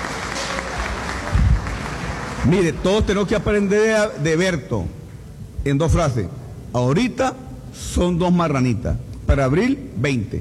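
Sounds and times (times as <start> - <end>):
audience applause: 0.0 - 3.0
speech: 2.4 - 5.0, 5.6 - 10.3.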